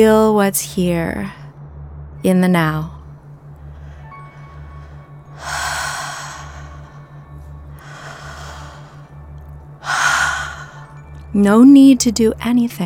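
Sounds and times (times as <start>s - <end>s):
speech: 0.0s - 1.4s, 2.2s - 3.0s, 11.3s - 12.8s
soft steady pulsing low tone: 0.0s - 12.8s
deep open-mouthed breathing during a meditation: 3.6s - 9.2s, 9.8s - 11.1s.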